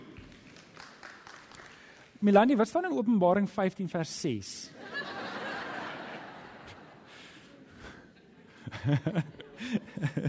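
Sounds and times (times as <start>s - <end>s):
audience clapping: 0.0s - 2.2s
speech: 2.2s - 5.0s, 8.8s - 10.2s
laughter: 4.8s - 10.2s.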